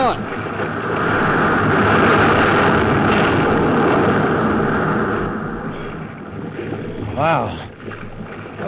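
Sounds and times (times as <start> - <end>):
huge wave crashing against ship's bow: 0.0 - 8.6.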